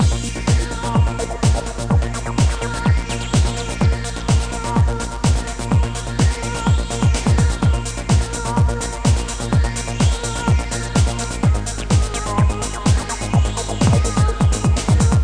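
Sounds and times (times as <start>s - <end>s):
music: 0.0s - 15.2s.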